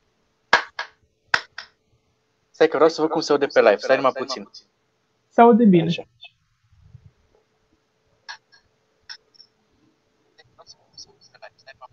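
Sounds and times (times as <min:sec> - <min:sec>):
hand claps: 0:00.5 - 0:01.8
speech: 0:02.6 - 0:04.8, 0:05.4 - 0:06.2.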